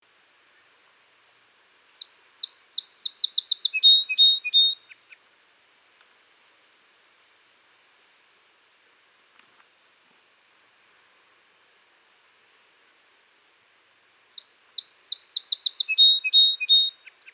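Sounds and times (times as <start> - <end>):
Song sparrow Melospiza melodia singing: 2.0 - 5.4, 14.3 - 17.3.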